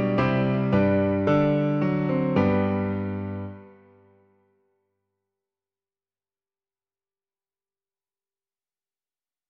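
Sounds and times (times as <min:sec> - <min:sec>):
hymn played on piano: 0:00.0 - 0:04.3.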